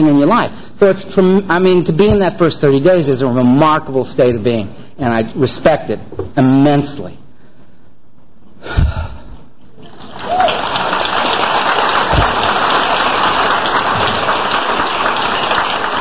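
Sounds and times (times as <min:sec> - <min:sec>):
speech: 0:00.0 - 0:07.2
audience clapping: 0:09.8 - 0:15.9
thump: 0:12.1 - 0:12.5.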